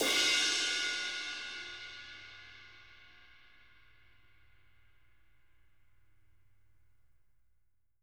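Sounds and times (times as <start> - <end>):
dark crash cymbal: 0.0 - 4.5.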